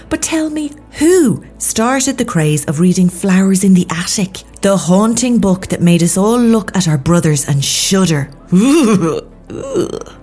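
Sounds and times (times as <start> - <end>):
speech: 0.1 - 10.2
retching or burping before vomiting: 8.5 - 10.2.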